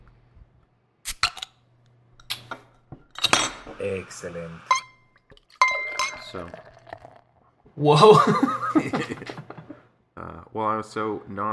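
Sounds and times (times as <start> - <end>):
beer bottle cap being pried open: 1.1 - 1.5, 2.2 - 2.6, 3.2 - 3.6, 4.7 - 6.6
speech: 3.8 - 4.8, 6.3 - 6.7, 7.8 - 9.4, 10.5 - 11.5.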